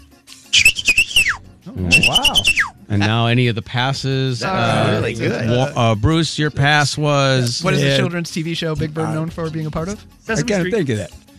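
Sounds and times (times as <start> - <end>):
person imitating a bird call: 0.6 - 2.7
speech: 1.7 - 11.2.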